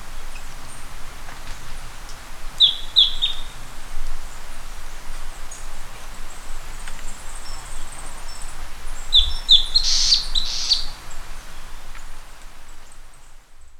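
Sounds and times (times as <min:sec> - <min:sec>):
bird chirping: 0:02.6 - 0:03.5, 0:06.7 - 0:10.9.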